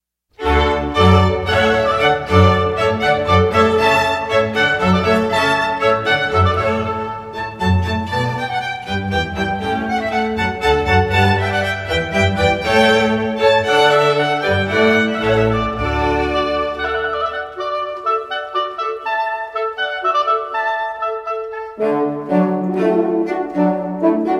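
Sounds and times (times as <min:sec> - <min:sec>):
hornpipe tune: 0:00.4 - 0:24.3.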